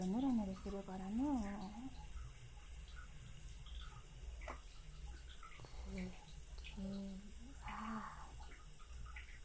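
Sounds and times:
speech: 0:00.0 - 0:02.1, 0:05.9 - 0:06.2, 0:06.8 - 0:08.2
soft splashing and running water rinsing someone in a bath: 0:00.0 - 0:09.4.

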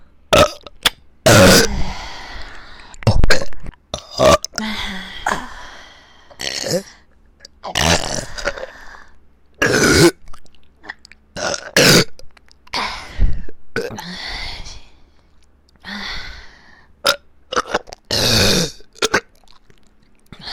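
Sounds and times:
burping in both ears: 0:00.3 - 0:01.8, 0:03.1 - 0:04.6, 0:07.6 - 0:08.7, 0:09.6 - 0:10.2, 0:10.9 - 0:12.2, 0:17.1 - 0:19.6.

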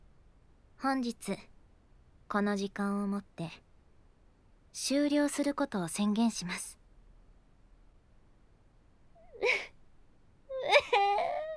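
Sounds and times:
speech: 0:00.8 - 0:01.5, 0:02.3 - 0:03.7, 0:04.7 - 0:06.8
girl crying: 0:09.3 - 0:09.7, 0:10.5 - 0:11.5.

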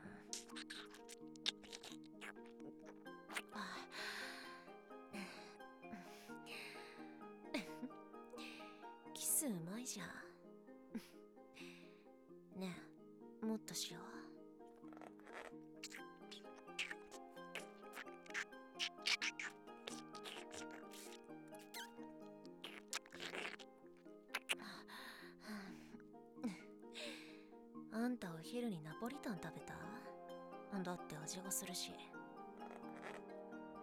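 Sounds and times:
armpit sniffing: 0:00.0 - 0:04.5, 0:14.8 - 0:23.7, 0:24.3 - 0:24.7, 0:32.6 - 0:33.3
background music: 0:00.0 - 0:33.8
kissing in an abandoned house: 0:00.2 - 0:03.9, 0:14.8 - 0:23.7, 0:24.3 - 0:24.6, 0:32.6 - 0:33.3.

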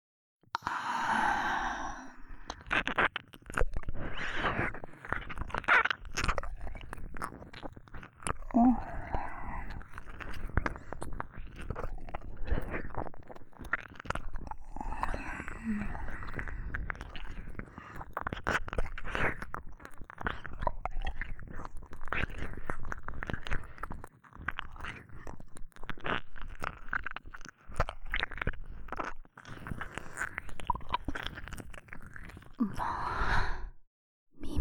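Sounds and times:
breathy sighs: 0:00.6 - 0:02.8, 0:08.5 - 0:09.8, 0:14.7 - 0:16.7, 0:32.6 - 0:33.8
tongue licking: 0:00.6 - 0:32.9.

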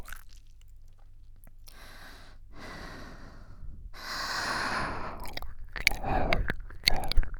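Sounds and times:
breathing into ear: 0:01.7 - 0:05.3, 0:06.0 - 0:07.1.

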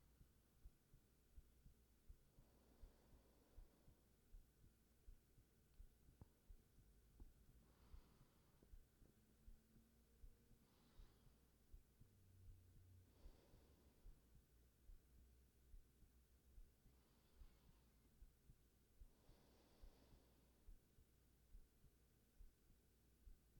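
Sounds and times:
heartbeat: 0:00.0 - 0:23.5
sleeping breathing: 0:07.5 - 0:14.3, 0:16.9 - 0:18.1, 0:19.0 - 0:20.8.

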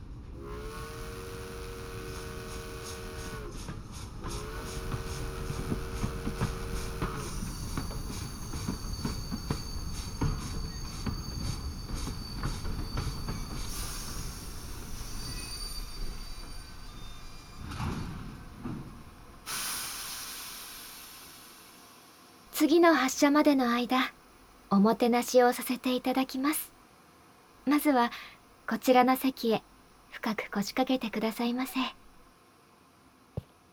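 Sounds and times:
train rumbling and rattling as it slows: 0:00.0 - 0:19.6
train wheels and brakes squealing: 0:00.4 - 0:20.9
train air hissing: 0:00.4 - 0:22.4
speech: 0:22.6 - 0:26.7, 0:27.6 - 0:32.0.

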